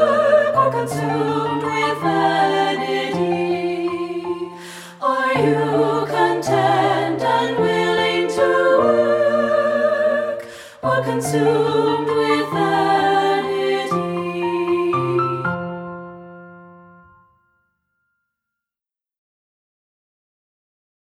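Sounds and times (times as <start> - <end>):
treble choir singing: 0.0 - 15.9.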